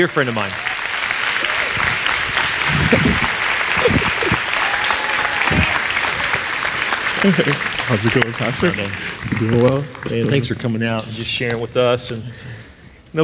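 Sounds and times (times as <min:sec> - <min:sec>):
speech: 0:00.0 - 0:00.7, 0:02.7 - 0:04.2, 0:07.2 - 0:13.2
audience applause welcoming a guest speaker: 0:00.0 - 0:10.8
laughter: 0:02.0 - 0:09.1.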